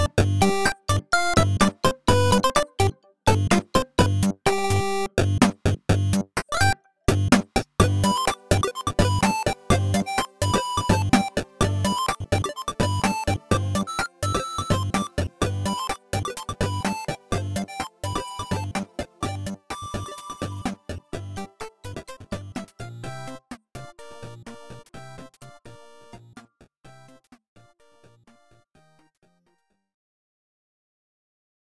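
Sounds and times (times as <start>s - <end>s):
8-bit chiptune music on Nintendo Switch: 0.0s - 23.3s.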